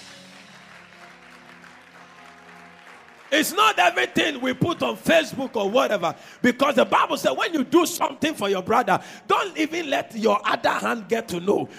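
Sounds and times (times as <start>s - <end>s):
audience clapping: 0.0s - 7.6s
speech: 3.4s - 11.7s.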